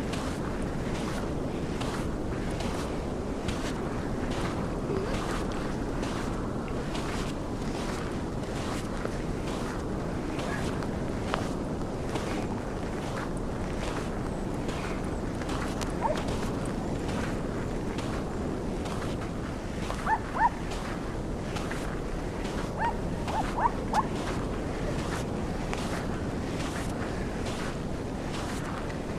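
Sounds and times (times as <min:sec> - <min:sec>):
outdoor soundscape: 0:00.0 - 0:29.1.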